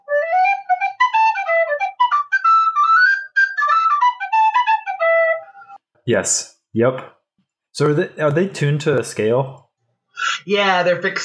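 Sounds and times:
simple wooden whistle playing a lively melody: 0.0s - 5.8s
speech: 6.1s - 7.2s, 7.8s - 9.6s, 10.4s - 11.2s.

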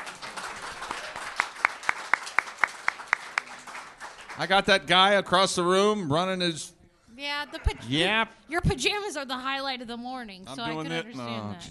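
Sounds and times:
applause: 0.0s - 4.9s
speech: 4.4s - 11.6s.

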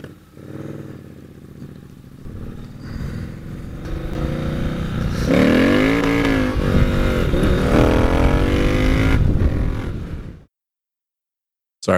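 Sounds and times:
Triumph Bonneville T120 1200 parallel-twin motorcycle engine with two-into-one exhaust revving: 0.1s - 10.4s
wind noise: 1.2s - 10.4s.

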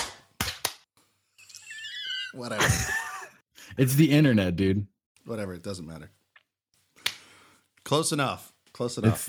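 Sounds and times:
hand clap: 0.0s - 0.9s, 7.0s - 7.3s
speech: 2.3s - 3.0s, 3.8s - 6.2s, 7.9s - 9.2s.

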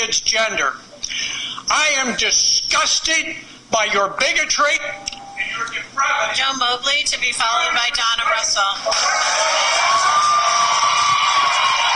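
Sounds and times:
speech: 0.0s - 10.5s
crowd cheering and shouting at a school board meeting: 8.9s - 11.9s
whoops: 9.0s - 11.9s.

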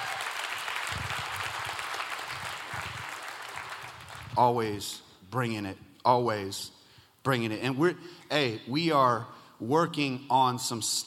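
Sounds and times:
church audience applauding the worship team: 0.0s - 4.5s
speech: 4.4s - 11.0s.

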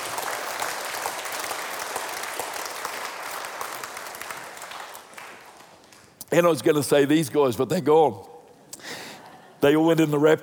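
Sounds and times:
crowd applause, hand clapping: 0.0s - 6.2s
speech: 6.3s - 8.3s, 9.6s - 10.4s.

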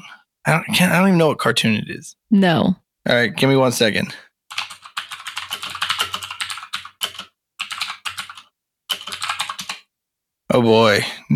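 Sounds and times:
speech: 0.1s - 4.6s, 10.6s - 11.3s
rapid typing on a computer keyboard: 4.5s - 9.9s.

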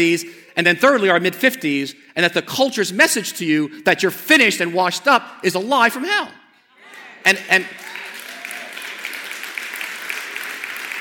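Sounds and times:
speech: 0.0s - 6.4s, 7.2s - 7.8s
audience clapping: 6.9s - 10.9s.

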